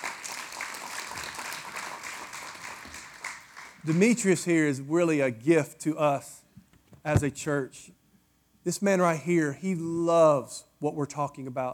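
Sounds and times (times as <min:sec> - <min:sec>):
audience hand clapping: 0:00.0 - 0:04.2
speech: 0:03.8 - 0:06.4, 0:07.0 - 0:08.0, 0:08.6 - 0:11.7.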